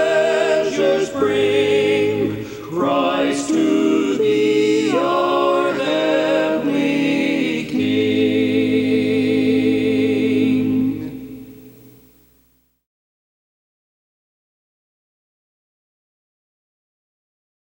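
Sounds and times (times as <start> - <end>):
tenor singing: 0.0 - 11.8.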